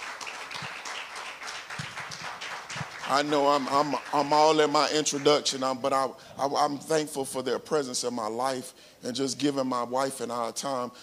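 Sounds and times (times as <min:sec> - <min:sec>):
audience hand clapping: 0:00.0 - 0:05.6
speech: 0:03.1 - 0:11.0.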